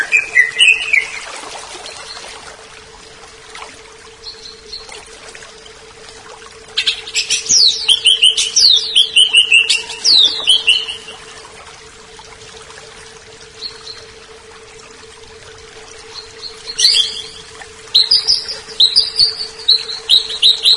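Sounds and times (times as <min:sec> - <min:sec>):
leafbird singing varied phrases: 0:00.0 - 0:01.2, 0:06.8 - 0:11.1, 0:16.1 - 0:20.7.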